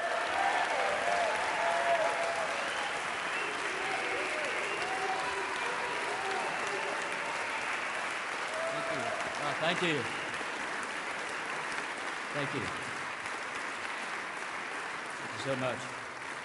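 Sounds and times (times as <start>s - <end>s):
faint voices and cheers: 0.0s - 10.2s
audience applause: 0.0s - 16.4s
speech: 9.7s - 10.2s, 12.4s - 12.8s, 15.4s - 16.0s.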